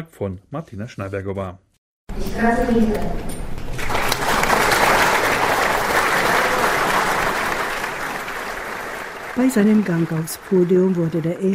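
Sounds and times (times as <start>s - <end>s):
speech: 0.0s - 3.4s, 9.4s - 11.5s
thunderous applause from a large audience: 3.8s - 11.5s.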